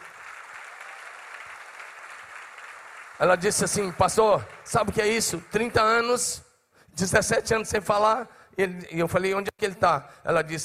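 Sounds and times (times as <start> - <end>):
audience applause: 0.0 - 6.0
speech: 3.2 - 10.6.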